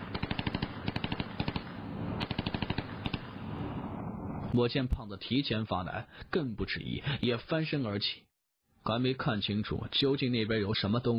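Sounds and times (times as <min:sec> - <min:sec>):
submachine gun firing long bursts: 0:00.0 - 0:03.3
speech: 0:04.5 - 0:11.1.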